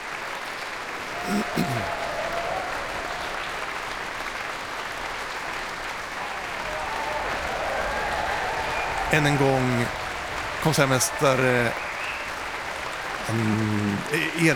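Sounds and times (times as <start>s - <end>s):
concert audience applause: 0.0s - 14.5s
laughter: 1.1s - 3.2s, 6.6s - 11.8s, 13.0s - 14.5s
speech: 9.1s - 10.0s, 10.6s - 11.9s, 13.3s - 14.5s.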